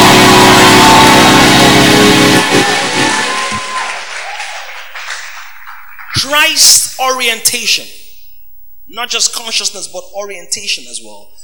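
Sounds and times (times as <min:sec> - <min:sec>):
audience applause: 0:00.0 - 0:06.2
speech: 0:06.3 - 0:08.0, 0:08.9 - 0:11.4.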